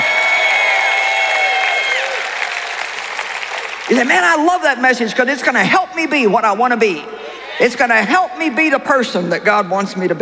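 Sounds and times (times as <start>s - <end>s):
audience shouting, clapping and cheering: 0.0s - 4.8s
speech: 3.9s - 10.1s.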